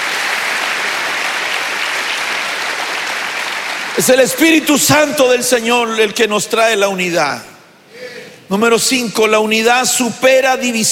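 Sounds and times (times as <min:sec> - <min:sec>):
audience applauding: 0:00.0 - 0:04.3
speech: 0:04.0 - 0:07.5, 0:08.5 - 0:10.9.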